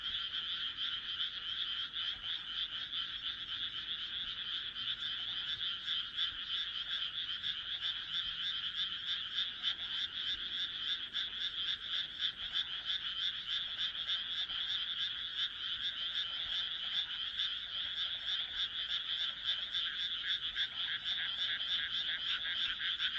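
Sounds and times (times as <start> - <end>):
frog chorus croaking: 0.0 - 23.1.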